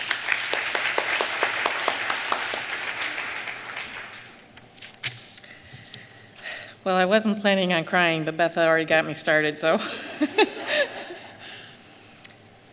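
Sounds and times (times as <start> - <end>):
audience applause: 0.0 - 4.3
speech: 6.8 - 10.9
laughter: 9.8 - 11.4.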